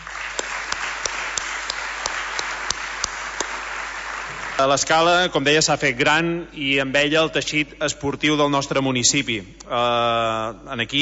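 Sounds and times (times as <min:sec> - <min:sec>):
audience applause: 0:00.0 - 0:05.2
speech: 0:04.6 - 0:11.0.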